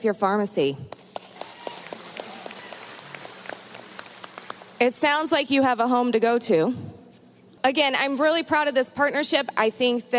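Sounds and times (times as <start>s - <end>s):
speech: 0.0s - 1.0s, 4.8s - 6.9s, 7.6s - 10.1s
audience clapping: 0.9s - 4.9s.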